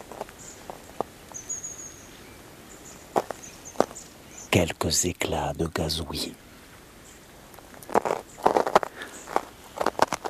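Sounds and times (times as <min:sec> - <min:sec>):
speech: 0:04.6 - 0:06.5
footsteps on crusted, icy snow: 0:07.9 - 0:10.2.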